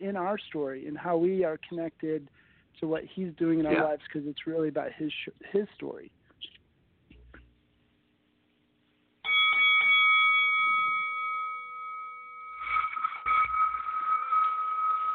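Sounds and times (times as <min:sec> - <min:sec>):
speech: 0:00.1 - 0:06.6
signal or alarm bell ringing: 0:09.2 - 0:15.1.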